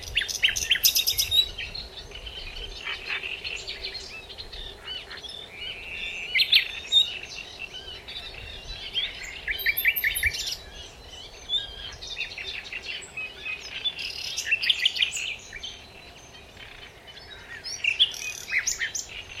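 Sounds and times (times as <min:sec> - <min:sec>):
common nightingale song: 0:00.0 - 0:19.3.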